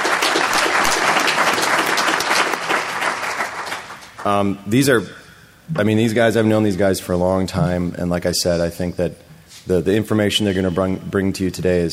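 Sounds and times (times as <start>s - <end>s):
audience applause: 0.0s - 4.2s
speech: 4.2s - 11.9s.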